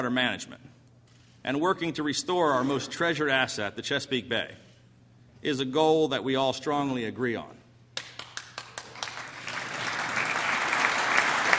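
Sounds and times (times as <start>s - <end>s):
speech: 0.0s - 0.7s, 1.4s - 4.6s, 5.4s - 7.6s
crowd applause: 8.6s - 11.5s.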